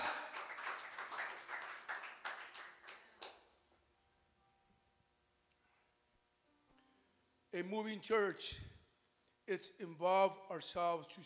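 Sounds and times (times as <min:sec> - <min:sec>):
audience applause: 0:00.0 - 0:03.3
speech: 0:07.5 - 0:08.7, 0:09.5 - 0:11.2.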